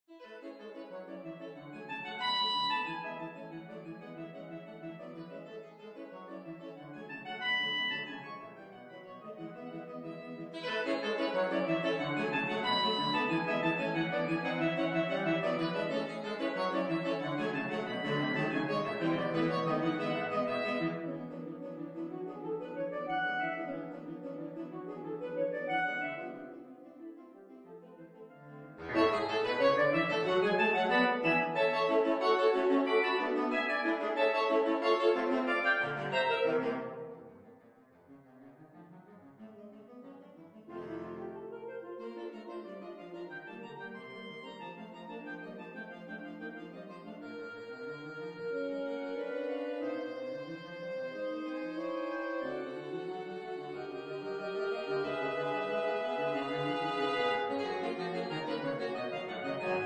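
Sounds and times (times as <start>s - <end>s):
saxophone ensemble: 0.3s - 26.6s, 28.4s - 37.6s, 40.2s - 59.8s.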